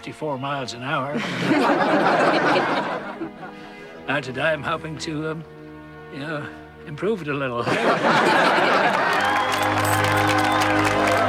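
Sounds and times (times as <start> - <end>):
speech: 0.0 - 10.9
laughter: 1.1 - 3.8, 7.6 - 11.2
crowd clapping and cheering at a vintage motorbike speed event: 8.2 - 11.2.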